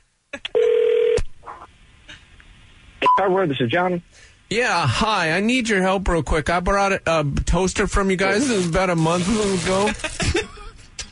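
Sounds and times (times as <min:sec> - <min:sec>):
telephone tone of a prank call to a hardware store: 0:00.6 - 0:01.2
speech: 0:03.2 - 0:10.3.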